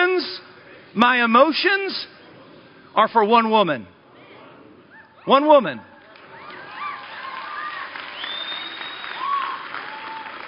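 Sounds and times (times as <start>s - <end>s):
speech: 0.9s - 2.2s, 3.0s - 4.0s, 5.2s - 5.9s
audience cheering and applause: 6.1s - 10.4s.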